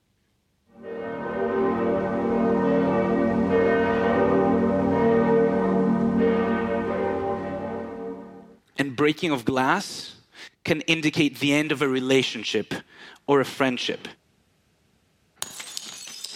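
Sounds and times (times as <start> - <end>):
church bells ringing: 0.8 - 8.6
speech: 9.0 - 14.2.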